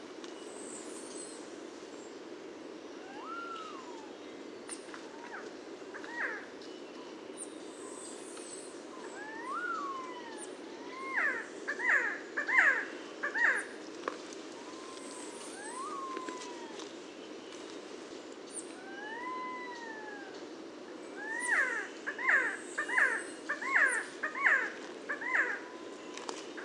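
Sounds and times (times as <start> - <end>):
Resplendent Quetzal Pharomachrus mocinno calling: 3.0 - 4.2, 9.0 - 13.7, 14.6 - 16.8, 18.5 - 20.4, 21.1 - 26.0.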